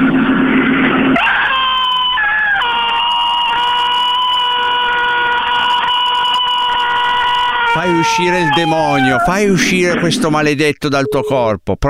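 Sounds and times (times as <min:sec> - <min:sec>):
loud scream during exorcism: 0:01.1 - 0:09.6
speech: 0:08.0 - 0:11.8.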